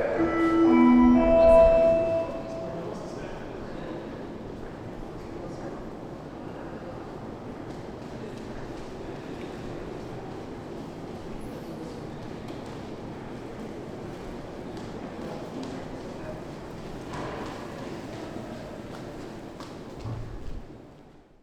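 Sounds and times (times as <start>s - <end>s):
siren test: 0.2s - 2.8s.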